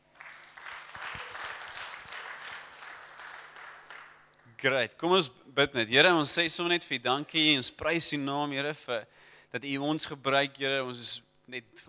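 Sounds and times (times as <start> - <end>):
crowd applause: 0.0 - 4.2
speech: 4.6 - 11.8.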